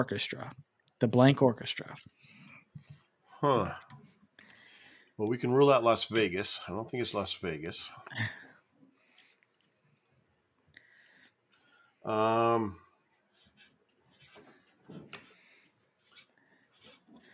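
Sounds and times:
speech during a quiz game: 0.0s - 2.1s, 3.4s - 3.9s, 5.2s - 8.4s, 12.1s - 12.9s
scratchy strokes of someone writing the name of a city: 13.4s - 17.3s.

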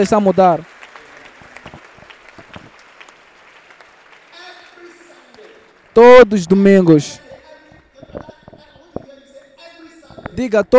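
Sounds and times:
speech: 0.0s - 0.7s, 6.0s - 7.2s, 10.4s - 10.7s
audience applause: 0.0s - 6.8s.

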